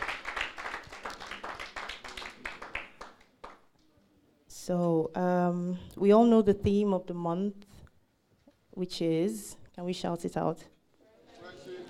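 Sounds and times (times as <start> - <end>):
audience clapping: 0.0 - 3.9
speech: 4.7 - 7.7, 8.8 - 10.7.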